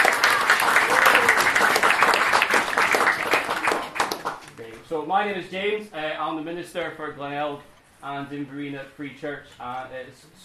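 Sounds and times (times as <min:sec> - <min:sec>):
audience clapping: 0:00.0 - 0:04.7
speech: 0:05.0 - 0:10.4.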